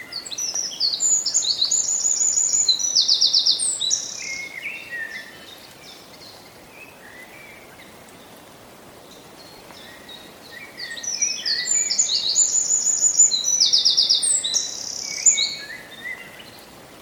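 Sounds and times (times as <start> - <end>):
Eurasian wren singing: 0.2 - 4.5, 10.7 - 16.5.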